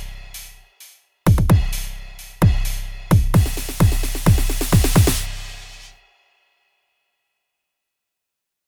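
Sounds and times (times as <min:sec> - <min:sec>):
synthesizer drum patch demo: 0:01.3 - 0:05.9.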